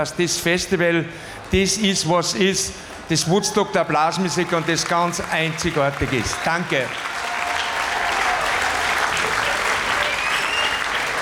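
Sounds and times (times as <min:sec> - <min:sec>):
speech: 0:00.0 - 0:07.1
audience applause: 0:02.3 - 0:11.2.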